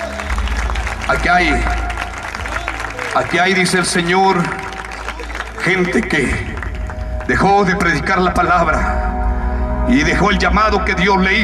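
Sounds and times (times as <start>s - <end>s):
church congregation applauding: 0.0s - 9.0s
speech: 1.1s - 1.9s, 3.2s - 4.6s, 5.6s - 6.5s, 7.3s - 9.1s, 9.9s - 11.4s.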